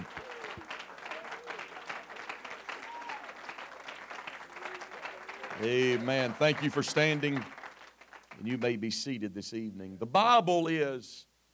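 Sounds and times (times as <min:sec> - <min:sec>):
audience clapping: 0:00.0 - 0:08.9
speech: 0:05.6 - 0:07.6, 0:08.4 - 0:11.3.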